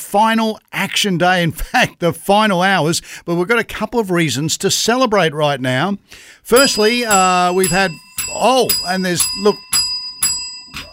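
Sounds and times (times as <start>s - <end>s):
speech: 0.1s - 9.8s
bell rung for each $1,000 donation at a fundraising event: 6.6s - 10.9s.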